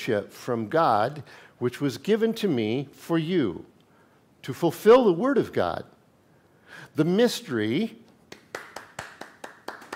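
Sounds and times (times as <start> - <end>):
speech: 0.0 - 3.7, 4.4 - 5.9, 6.7 - 8.0
audience clapping: 8.3 - 9.9.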